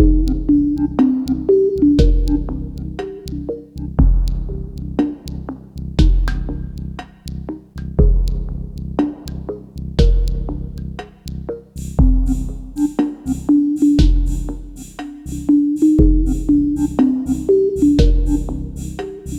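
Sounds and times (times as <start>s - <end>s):
slow chill drum machine synth music at 30 BPM: 0.0s - 19.3s.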